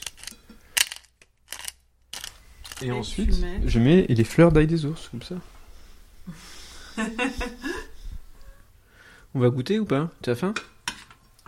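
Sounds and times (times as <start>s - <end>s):
pepper mill grinding black pepper over fish: 0.0s - 2.9s
speech: 2.8s - 5.6s, 6.3s - 7.9s, 9.3s - 10.7s
laughter: 6.3s - 8.1s.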